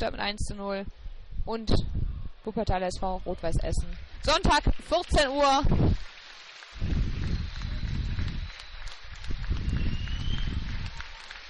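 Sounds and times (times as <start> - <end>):
speech: 0.0 - 6.1
football team clapping: 3.9 - 11.4
stadium crowd cheering in the stands: 4.3 - 11.4.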